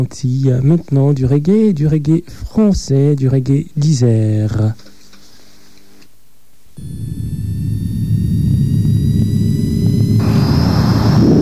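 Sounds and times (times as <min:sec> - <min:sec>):
speech: 0:00.0 - 0:04.9
jet airliner engine roar taking off for Pointe-à-Pitre: 0:06.8 - 0:11.4
thin high whining tones of jet airliner engines: 0:06.8 - 0:11.4.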